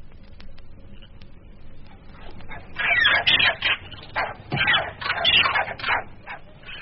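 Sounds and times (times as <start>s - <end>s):
steady low hum: 0.0s - 6.7s
monkeys calling in the jungle: 2.2s - 6.7s.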